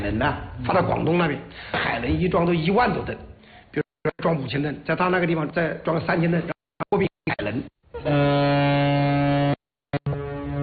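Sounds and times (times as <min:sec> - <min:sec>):
speech: 0:00.1 - 0:03.3, 0:04.1 - 0:08.3
cargo ship horn sounding on departure from a river port: 0:08.0 - 0:10.6.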